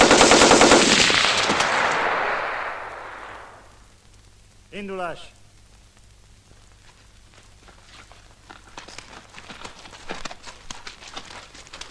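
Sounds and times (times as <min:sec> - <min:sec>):
machine gun fire: 0:00.0 - 0:03.8
speech: 0:04.8 - 0:05.4.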